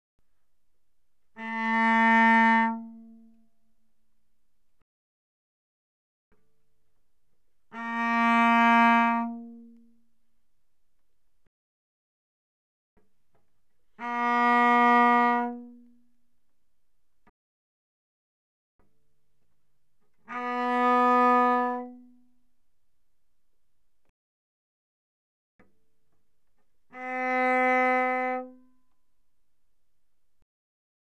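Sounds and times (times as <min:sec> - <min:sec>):
cello bowed arco mezzo forte on the G string: 0:01.3 - 0:03.4, 0:07.6 - 0:10.0, 0:13.9 - 0:16.1, 0:20.2 - 0:22.2, 0:26.8 - 0:28.6.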